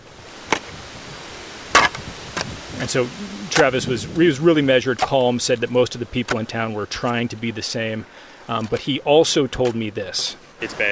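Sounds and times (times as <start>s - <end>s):
shovel digging a drainage trench into the ground: 1.7s - 2.6s
speech: 2.8s - 10.9s.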